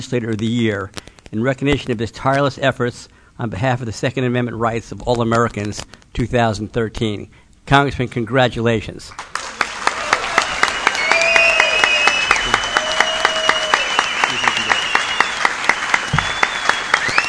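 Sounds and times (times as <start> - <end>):
speech: 0.0 - 9.3
audience applause: 9.2 - 17.2.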